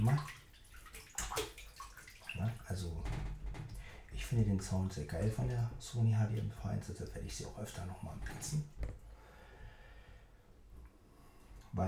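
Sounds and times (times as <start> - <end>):
speech: 0.0 - 0.4, 4.3 - 8.8
water sloshing and splashing: 0.0 - 9.3.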